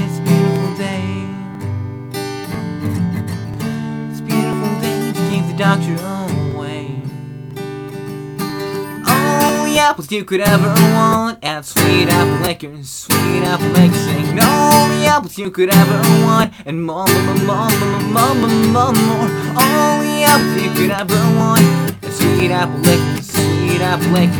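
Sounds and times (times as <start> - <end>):
acoustic cover song: 0.0 - 24.3.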